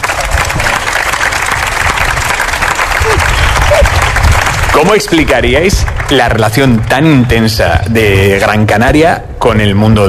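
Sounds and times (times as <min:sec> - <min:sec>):
crowd cheers: 0:00.0 - 0:04.6
crowd applause: 0:00.0 - 0:06.4
speech: 0:04.8 - 0:10.0.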